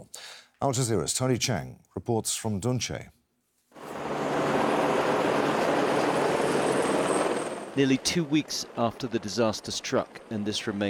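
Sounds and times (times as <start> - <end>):
speech: 0.6 - 3.2, 7.8 - 10.8
helicopter dropping reinforced pipe to the Chilime hydro plant access tunnel: 3.8 - 10.8.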